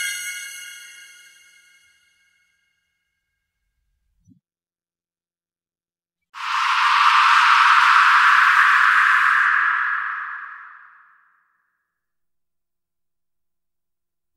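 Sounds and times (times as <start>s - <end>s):
horror scream: 6.4s - 11.0s.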